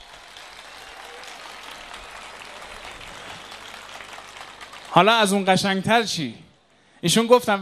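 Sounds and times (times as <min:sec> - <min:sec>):
audience applause: 0:00.0 - 0:05.8
speech: 0:04.9 - 0:06.4, 0:07.0 - 0:07.5.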